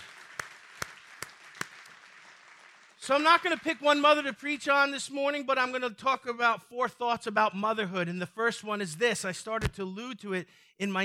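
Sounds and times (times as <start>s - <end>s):
audience clapping: 0.0s - 4.2s
speech: 3.1s - 11.0s.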